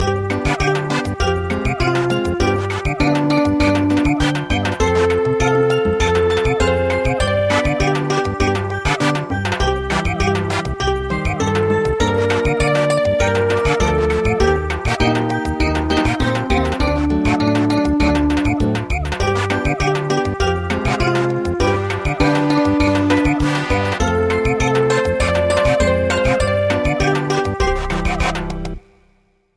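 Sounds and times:
traditional samba music: 0.2 - 28.8.

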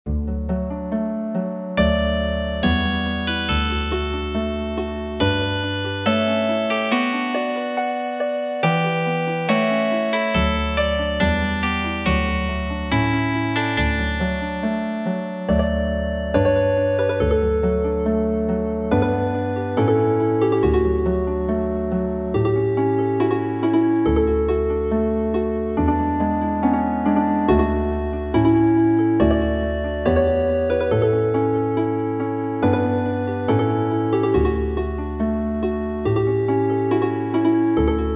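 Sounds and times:
healing harp: 0.1 - 38.1.

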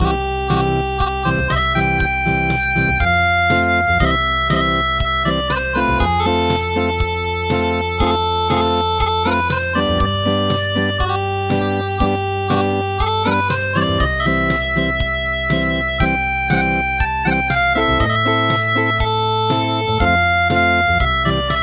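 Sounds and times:
traditional acoustic music: 0.0 - 21.6.

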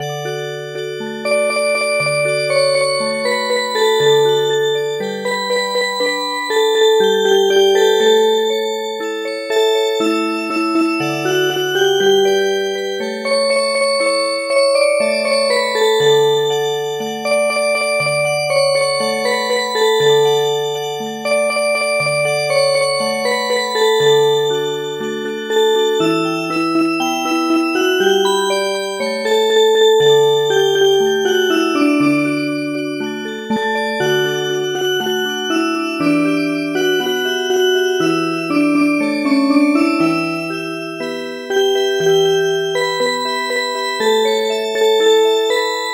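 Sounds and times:
MIDI music box melody: 0.0 - 45.9.

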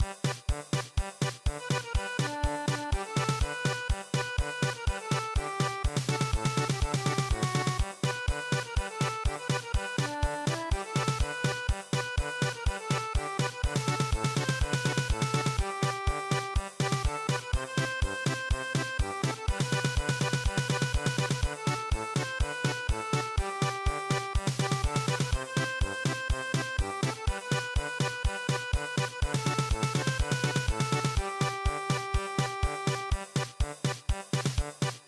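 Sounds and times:
German polka music: 0.0 - 35.0.

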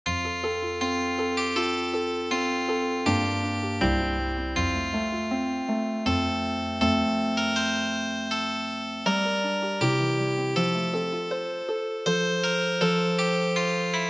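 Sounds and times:
healing harp music: 0.2 - 14.0.

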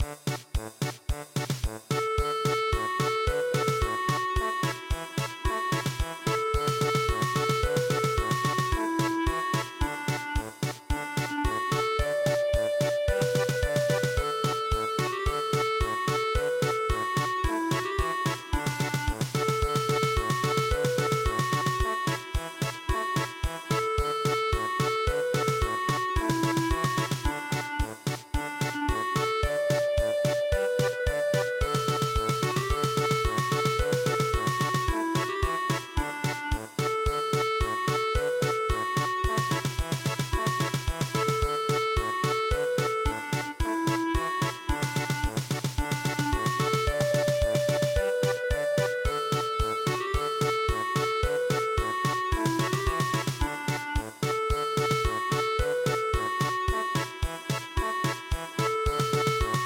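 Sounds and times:
polka music: 0.0 - 59.6.

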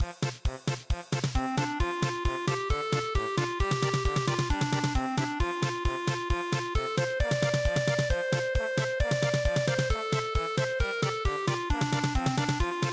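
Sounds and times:
polka music: 0.1 - 12.9.

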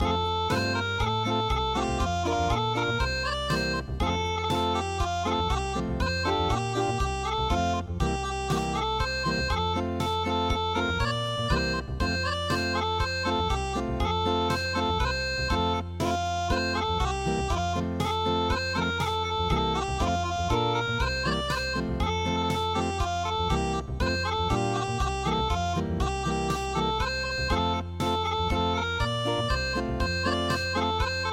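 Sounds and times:
acoustic music: 0.0 - 31.3.

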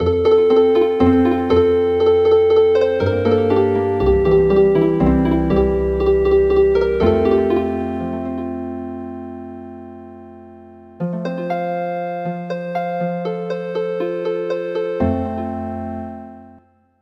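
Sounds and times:
healing harp music: 0.0 - 16.6.

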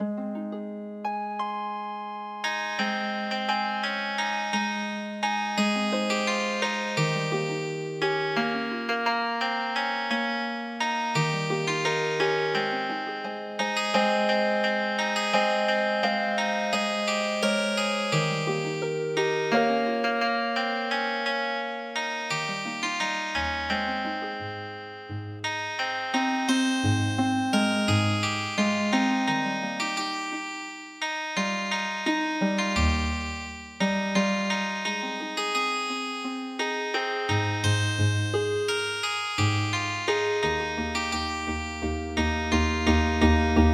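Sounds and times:
healing harp music: 0.0 - 30.4, 31.3 - 43.7.

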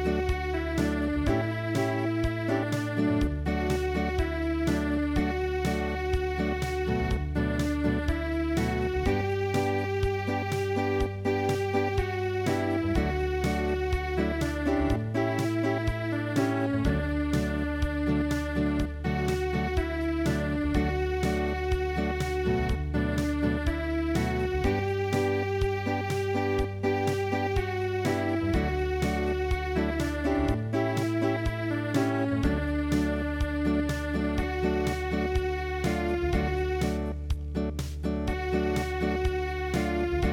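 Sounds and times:
traditional tune played as MIDI: 0.0 - 40.3.

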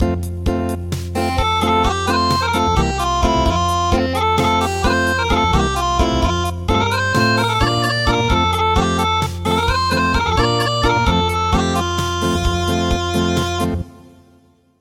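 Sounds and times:
traditional acoustic music: 1.1 - 14.1.

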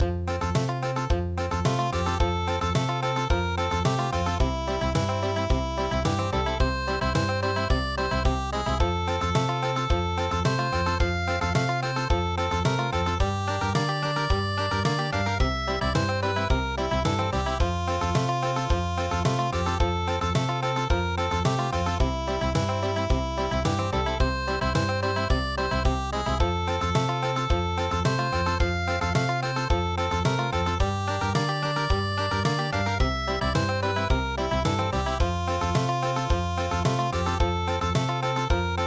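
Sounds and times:
country midi music: 0.0 - 38.8.

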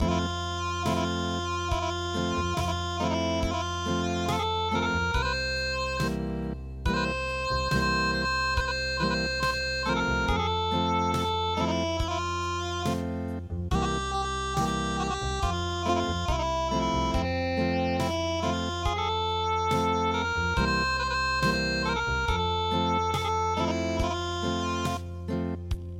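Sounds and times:
traditional acoustic music: 0.0 - 25.9.

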